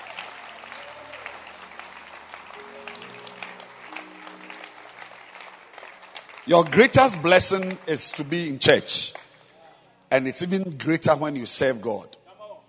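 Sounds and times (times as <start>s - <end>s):
audience clapping hands: 0.0s - 9.6s
speech: 6.5s - 9.2s, 10.1s - 12.2s.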